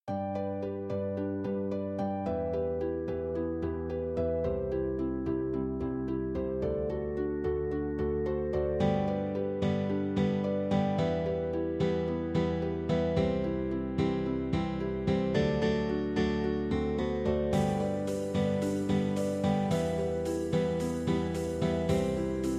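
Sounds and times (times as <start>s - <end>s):
art song in G major: 0.1s - 22.5s.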